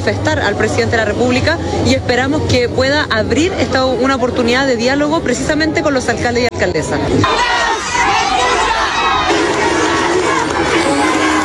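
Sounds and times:
speech: 0.0s - 7.7s
crowd shouting and booing: 7.1s - 11.4s.

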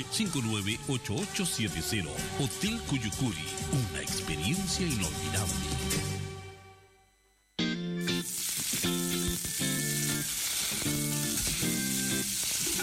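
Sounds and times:
speech: 0.0s - 6.0s
meat sizzling on a grill: 8.0s - 12.8s.

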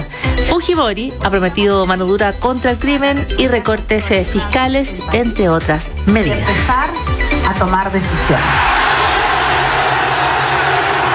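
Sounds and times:
speech: 0.5s - 8.8s
crowd erupting in cheers at Wembley after England win: 8.2s - 11.1s.

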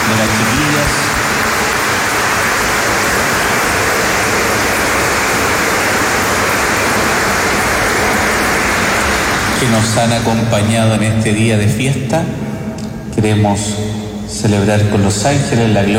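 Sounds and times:
audience applause: 0.0s - 10.4s
speech: 9.8s - 12.6s, 13.2s - 15.9s.

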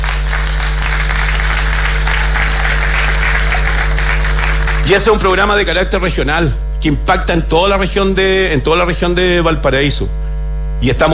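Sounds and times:
audience applauding: 0.0s - 6.1s
speech: 4.9s - 10.2s, 10.8s - 11.1s.

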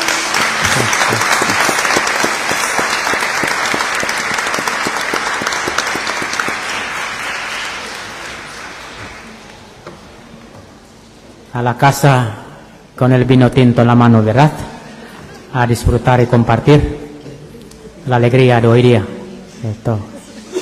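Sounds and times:
audience applause: 0.0s - 9.8s
speech: 11.6s - 12.4s, 13.0s - 14.7s, 15.5s - 17.0s, 18.0s - 20.6s.

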